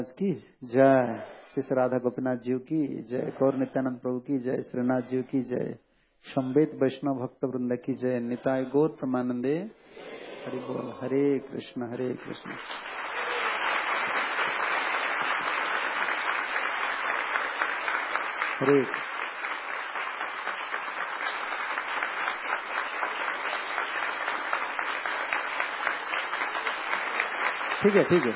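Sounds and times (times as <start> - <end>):
speech: 0.0 - 13.2, 18.6 - 19.1, 27.8 - 28.3
audience clapping: 12.1 - 28.3.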